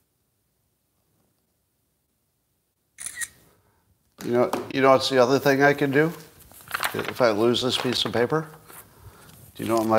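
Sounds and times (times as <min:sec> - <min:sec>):
camera shutter taking a picture: 0:03.0 - 0:03.4
speech: 0:04.2 - 0:06.2, 0:06.9 - 0:08.6, 0:09.6 - 0:09.9.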